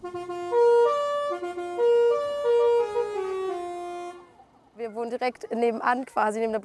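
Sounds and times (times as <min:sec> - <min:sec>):
book bus horn jingle: 0:00.0 - 0:04.4
speech: 0:05.1 - 0:06.6.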